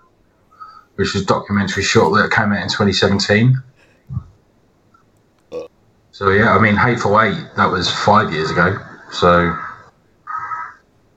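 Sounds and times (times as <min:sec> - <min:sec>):
speech: 0:01.0 - 0:04.2, 0:06.2 - 0:09.6
crow cawing: 0:09.4 - 0:10.9.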